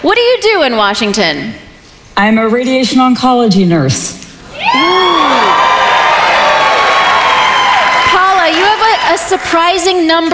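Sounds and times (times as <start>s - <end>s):
speech: 0.0s - 1.6s, 2.2s - 5.6s, 8.5s - 10.3s
whoops and shouts: 4.5s - 9.3s
studio audience clapping and cheering: 4.6s - 9.8s.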